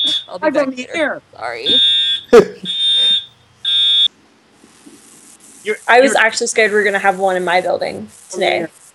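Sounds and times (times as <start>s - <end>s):
fire alarm blaring: 0.0s - 0.4s, 1.6s - 4.1s
speech: 0.3s - 2.7s, 5.6s - 8.8s
person exclaiming: 2.3s - 2.7s.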